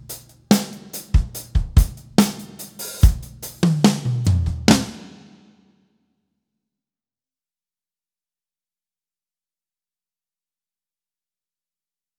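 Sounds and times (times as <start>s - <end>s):
drums through EMT 140 reverb: 0.0s - 5.5s.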